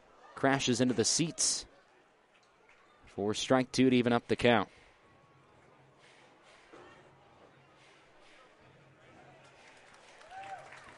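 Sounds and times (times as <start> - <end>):
speech: 0.4 - 1.7, 3.2 - 4.8
ballpark crowd applauding and cheering: 9.3 - 10.9.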